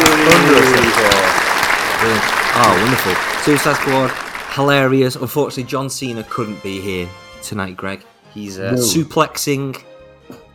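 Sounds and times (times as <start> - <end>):
applause: 0.0 - 5.2
speech: 2.0 - 10.4.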